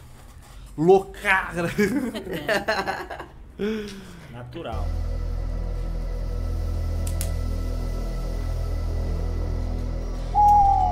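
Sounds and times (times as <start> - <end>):
speech: 0.8 - 5.1
laughter: 1.6 - 3.4
low pulsing music bed: 4.4 - 10.9
owl hooting: 10.2 - 10.9.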